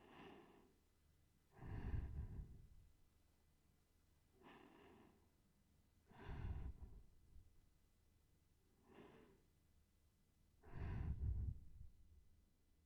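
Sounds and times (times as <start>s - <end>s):
sleeping breath: 0.0s - 0.8s, 1.5s - 2.8s, 4.4s - 5.4s, 6.0s - 7.1s, 8.8s - 9.4s, 10.6s - 12.0s.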